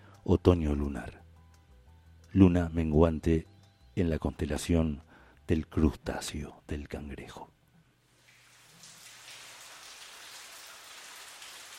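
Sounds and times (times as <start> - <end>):
speech: 0.2 - 1.2, 2.3 - 7.6
rain falling: 8.2 - 11.7.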